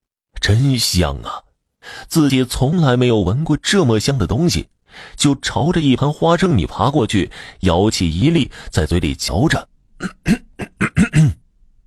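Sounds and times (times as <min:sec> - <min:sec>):
speech: 0:00.5 - 0:11.4
voice imitating a hedgehog coughing: 0:10.0 - 0:11.5.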